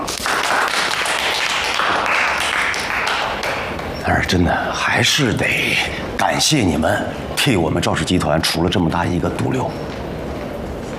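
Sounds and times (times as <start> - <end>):
applause: 0.0 - 3.9
speech: 4.3 - 10.0.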